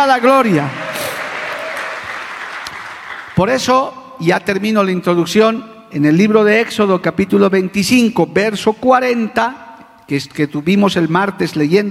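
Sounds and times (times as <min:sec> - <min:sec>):
speech: 0:00.0 - 0:00.8, 0:03.4 - 0:11.8
audience applauding: 0:00.5 - 0:03.5.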